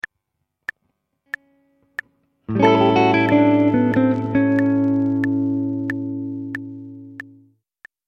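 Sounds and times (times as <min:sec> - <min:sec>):
blues music: 0:01.3 - 0:07.5.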